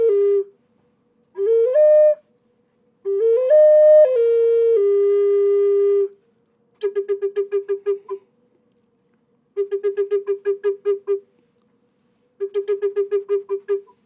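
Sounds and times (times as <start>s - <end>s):
tubular clay flute: 0.0s - 0.6s, 1.3s - 8.3s, 9.5s - 11.4s, 12.4s - 14.0s.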